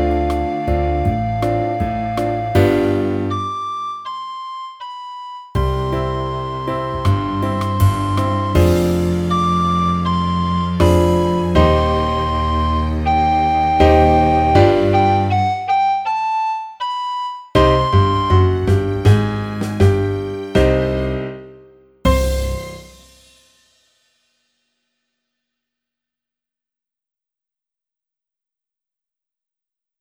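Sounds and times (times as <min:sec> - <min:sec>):
tango music for practice: 0:00.0 - 0:04.0, 0:05.6 - 0:23.1.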